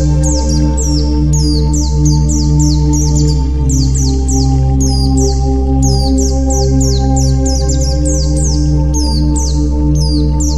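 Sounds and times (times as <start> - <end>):
white-eye song: 0.0 - 10.5.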